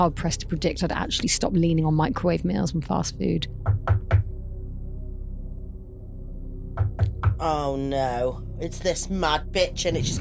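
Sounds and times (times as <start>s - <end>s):
speech: 0.0s - 3.9s, 7.4s - 10.1s
knocking on a door: 3.6s - 4.3s, 6.8s - 7.4s.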